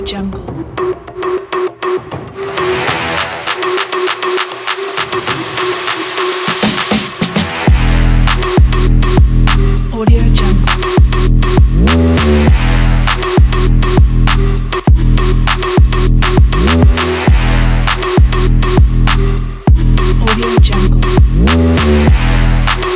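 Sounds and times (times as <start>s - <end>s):
action sport trap music: 0.6s - 22.9s.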